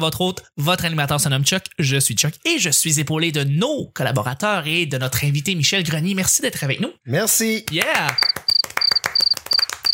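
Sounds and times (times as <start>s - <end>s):
speech: 0.0s - 9.6s
cricket chirping: 8.2s - 9.9s.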